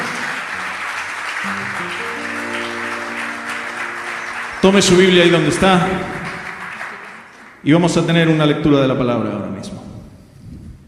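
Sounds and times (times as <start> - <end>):
applause: 0.0 - 8.0
speech: 1.4 - 2.3, 4.6 - 6.2, 7.6 - 9.9.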